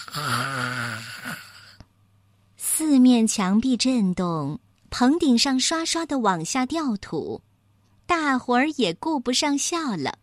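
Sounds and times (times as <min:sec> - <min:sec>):
person imitating loud snoring: 0:00.0 - 0:01.8
speech: 0:03.2 - 0:07.5, 0:08.1 - 0:10.2.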